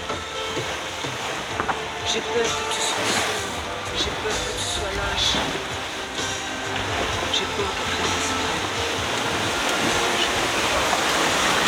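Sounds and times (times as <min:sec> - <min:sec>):
rush of water and wind as a racing sailboat glides over flat water: 0:00.0 - 0:11.6
speech: 0:02.1 - 0:03.1.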